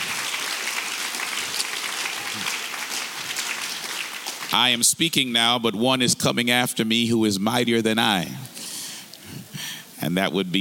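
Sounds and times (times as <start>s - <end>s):
audience clapping hands: 0.0s - 4.8s
speech: 4.5s - 8.6s, 10.0s - 10.6s.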